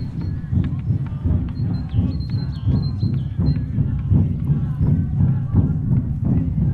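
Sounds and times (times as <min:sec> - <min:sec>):
drums at a ritual in a yurt: 0:00.0 - 0:06.7.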